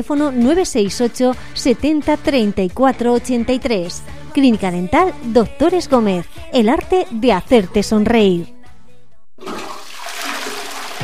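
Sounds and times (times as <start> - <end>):
speech: 0.0 - 8.6
toilet flushing: 9.4 - 11.0.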